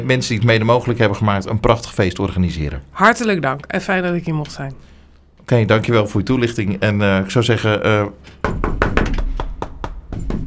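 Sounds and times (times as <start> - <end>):
speech: 0.0 - 4.9, 5.5 - 8.7
knuckles knocking on a door: 8.4 - 10.4.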